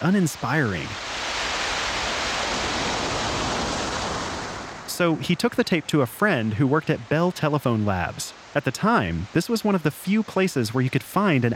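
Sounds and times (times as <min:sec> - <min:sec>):
speech: 0:00.0 - 0:01.1, 0:05.0 - 0:11.5
ocean surf roaring on a beach: 0:00.0 - 0:11.5.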